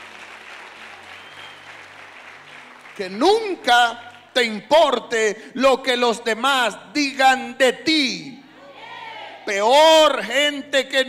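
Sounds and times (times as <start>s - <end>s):
church congregation clapping: 0.0s - 5.0s
speech: 3.0s - 8.4s, 9.5s - 11.0s.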